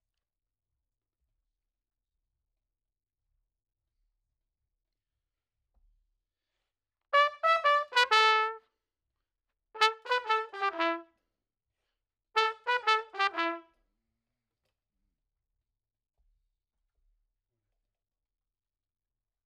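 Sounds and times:
trumpet: 0:07.2 - 0:08.6, 0:09.8 - 0:11.1, 0:12.4 - 0:13.8.

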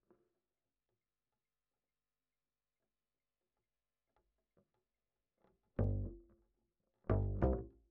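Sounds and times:
bass line: 0:05.8 - 0:06.2, 0:07.1 - 0:07.7.

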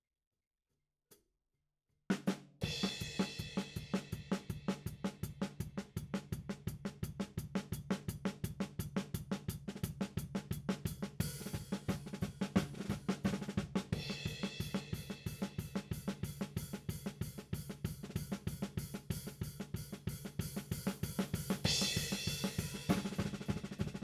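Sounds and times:
tom drum: 0:02.6 - 0:24.0.

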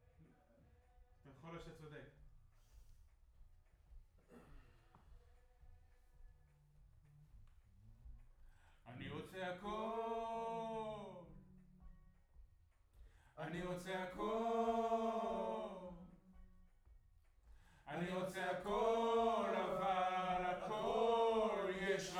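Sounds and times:
distant choir: 0:09.0 - 0:11.3, 0:13.4 - 0:16.3, 0:17.8 - 0:22.1.

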